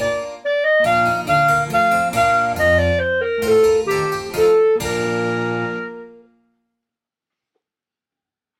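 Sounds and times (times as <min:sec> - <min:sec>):
carnival clarinet playing: 0:00.0 - 0:06.5.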